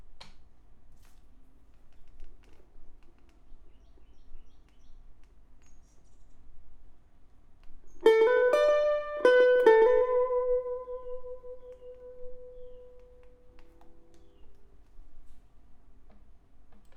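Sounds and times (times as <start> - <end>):
electric guitar: 8.0 - 14.0.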